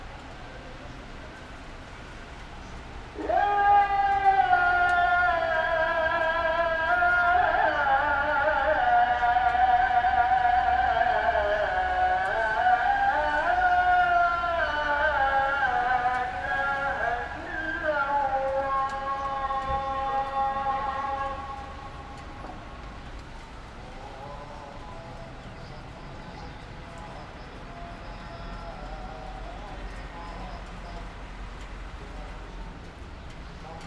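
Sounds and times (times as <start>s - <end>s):
city traffic in Taksim Square Istanbul: 0.0s - 33.8s
morning call to prayer in Taksim Square Istanbul: 0.0s - 33.8s.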